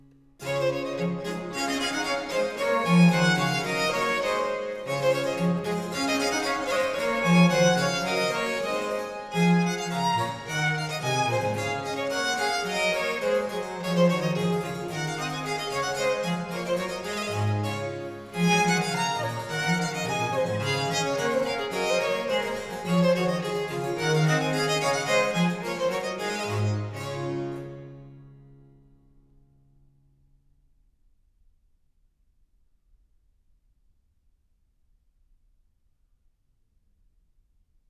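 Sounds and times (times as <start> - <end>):
trio sonata gavotte in D major: 0.4 - 28.6.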